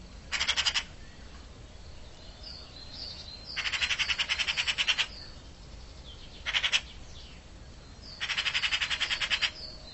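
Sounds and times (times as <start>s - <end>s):
bird giving harsh rattling calls: 0.3s - 0.9s, 3.5s - 5.2s, 6.4s - 7.0s, 8.2s - 9.6s.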